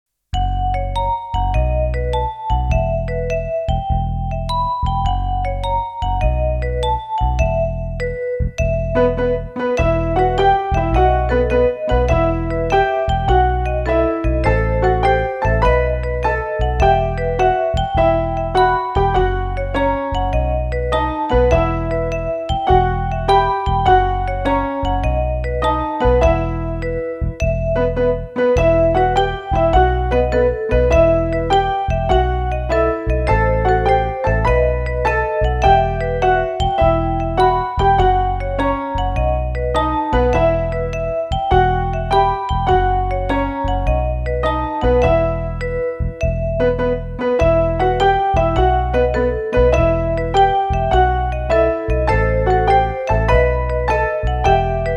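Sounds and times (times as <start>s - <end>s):
instrumental music without vocals: 0.3s - 54.9s.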